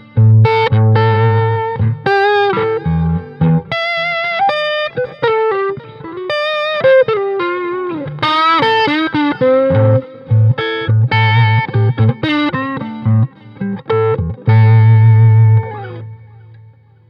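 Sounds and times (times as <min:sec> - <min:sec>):
crunchy distorted electric guitar: 0:00.0 - 0:17.0.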